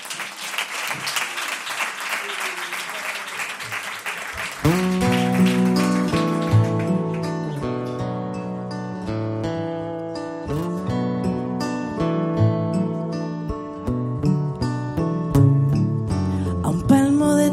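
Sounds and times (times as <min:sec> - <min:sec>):
audience applause: 0:00.0 - 0:07.8
instrumental music with sustained chords: 0:04.7 - 0:17.4.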